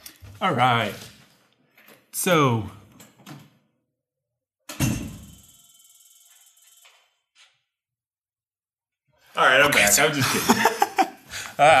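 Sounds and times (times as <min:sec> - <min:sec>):
speech: 0:00.4 - 0:01.1, 0:02.2 - 0:02.8, 0:09.7 - 0:10.8, 0:11.6 - 0:11.7
door swinging shut without slamming: 0:04.7 - 0:05.3
laughter: 0:09.9 - 0:11.7.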